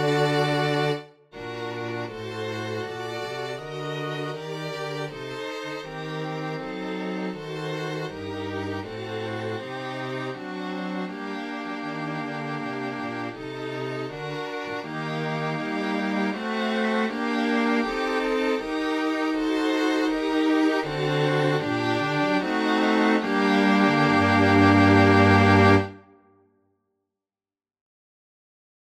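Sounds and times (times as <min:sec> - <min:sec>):
string melody in G minor: 0:00.0 - 0:26.3.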